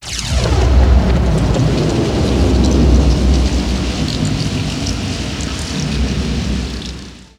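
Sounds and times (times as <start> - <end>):
thunder: 0.0 - 7.3.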